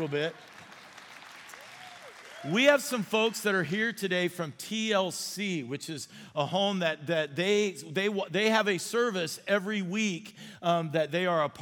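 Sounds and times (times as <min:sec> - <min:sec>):
speech: 0:00.0 - 0:00.6, 0:02.4 - 0:11.6
audience clapping: 0:00.0 - 0:02.9.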